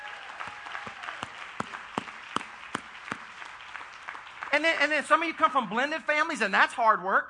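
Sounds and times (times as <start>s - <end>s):
church audience applauding: 0.0s - 5.6s
speech: 4.6s - 7.2s.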